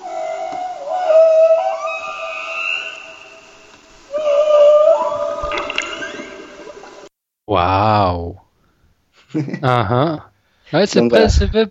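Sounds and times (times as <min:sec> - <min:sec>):
humpback whale song: 0:00.0 - 0:07.1
speech: 0:09.3 - 0:11.6.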